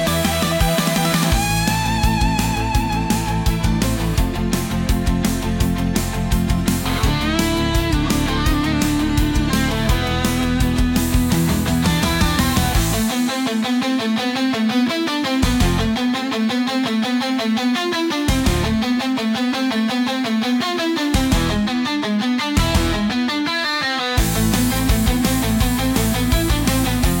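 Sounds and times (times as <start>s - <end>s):
hard rock music: 0.0s - 27.1s.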